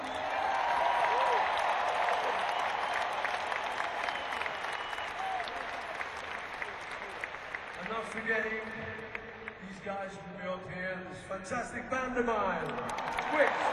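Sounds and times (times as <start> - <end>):
audience cheering: 0.0 - 8.6, 12.8 - 13.7
audience applauding: 0.0 - 9.6, 12.6 - 13.7
speech: 8.2 - 9.1, 9.8 - 13.7.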